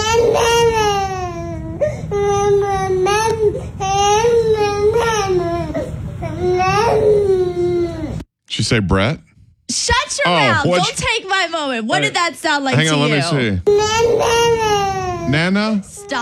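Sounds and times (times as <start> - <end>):
eight-month-old baby crying and babbling: 0.0 - 8.2, 13.7 - 16.2
speech: 8.7 - 14.5, 15.3 - 16.2.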